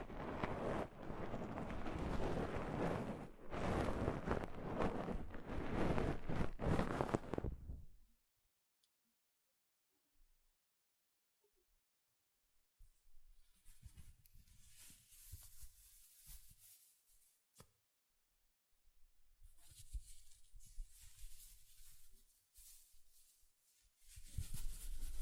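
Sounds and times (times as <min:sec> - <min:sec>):
soft fabric brushing against a microphone: 0:00.0 - 0:07.9, 0:13.6 - 0:17.2, 0:19.6 - 0:25.1.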